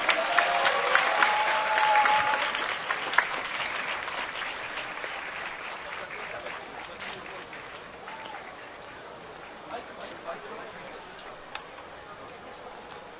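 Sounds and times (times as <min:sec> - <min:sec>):
audience applause welcoming a speaker: 0:00.0 - 0:09.8.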